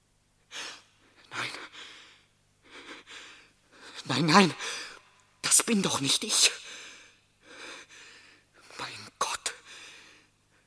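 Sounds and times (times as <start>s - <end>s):
person breathing: 0.5s - 4.0s, 4.6s - 5.0s, 6.6s - 8.6s, 9.6s - 10.6s
speech: 4.1s - 4.6s, 5.7s - 6.7s.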